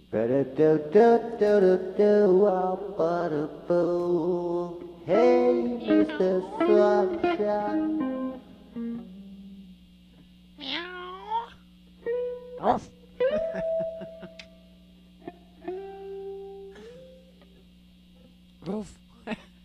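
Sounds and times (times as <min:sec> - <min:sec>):
speech: 0:00.1 - 0:08.1, 0:12.6 - 0:12.9
cat meowing: 0:10.6 - 0:11.6
laughter: 0:13.2 - 0:14.4.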